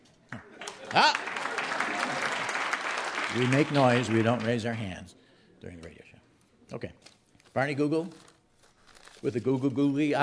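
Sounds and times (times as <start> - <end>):
speech: 0.3 - 1.4, 3.3 - 6.0, 6.7 - 8.2, 9.2 - 10.2
audience applause: 0.4 - 4.8.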